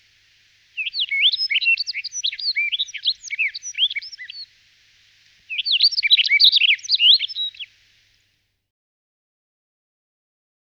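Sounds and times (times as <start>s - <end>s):
Emberiza rustica singing: 0.0s - 7.8s.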